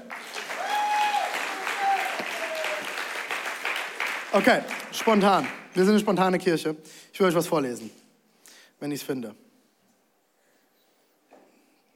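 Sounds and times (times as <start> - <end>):
audience applause: 0.0 - 5.6
speech: 4.4 - 8.0, 8.8 - 9.4.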